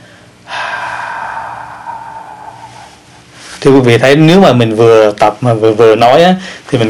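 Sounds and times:
heavy breathy exhale during a breathing exercise: 0.0s - 3.6s
speech: 3.6s - 6.8s.

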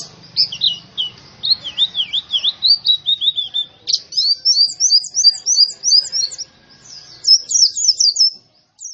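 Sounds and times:
white-eye twittering song: 0.0s - 8.9s.

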